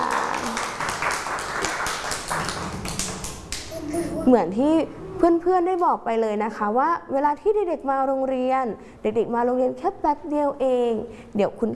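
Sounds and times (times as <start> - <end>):
children clapping hands: 0.0 - 3.8
speech: 4.3 - 11.7.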